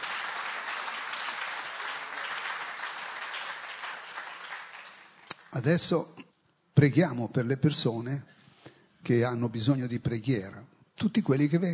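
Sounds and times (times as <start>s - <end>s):
audience applauding: 0.0s - 5.5s
speech: 5.5s - 6.2s, 6.8s - 8.4s, 9.0s - 11.7s.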